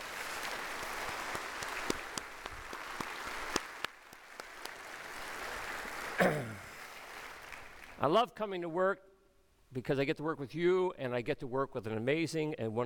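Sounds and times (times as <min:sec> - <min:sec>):
audience applause: 0:00.0 - 0:08.0
speech: 0:08.0 - 0:09.1, 0:09.7 - 0:12.8.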